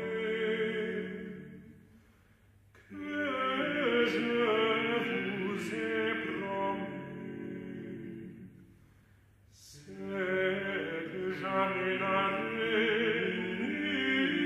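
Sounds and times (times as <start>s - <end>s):
polyphonic chanson: 0.0s - 14.4s.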